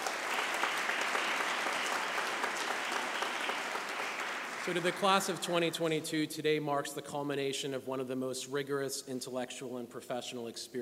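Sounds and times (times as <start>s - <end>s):
audience applause: 0.0s - 5.8s
speech: 4.7s - 10.8s.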